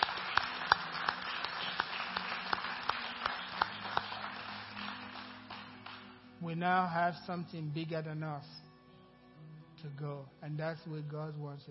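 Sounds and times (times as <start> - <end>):
audience clapping: 0.0 - 6.2
speech: 6.4 - 8.6, 9.8 - 11.7.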